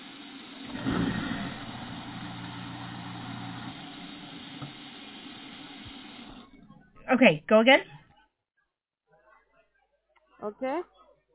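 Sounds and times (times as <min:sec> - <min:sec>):
whooshing water in dishwasher: 0:00.0 - 0:06.6
overflowing dishwasher humming and rumbling: 0:00.0 - 0:07.1
speech: 0:07.1 - 0:08.0, 0:10.4 - 0:11.0.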